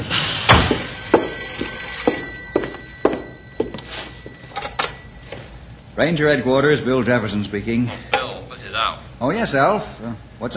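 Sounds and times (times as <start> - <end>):
telephone ringing: 0.0 - 7.5
speech: 6.0 - 8.2, 8.8 - 10.5.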